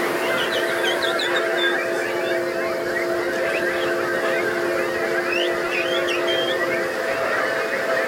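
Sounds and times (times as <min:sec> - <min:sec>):
crowd of people whistling, chirping and squawking imitating bird calls: 0:00.2 - 0:07.9.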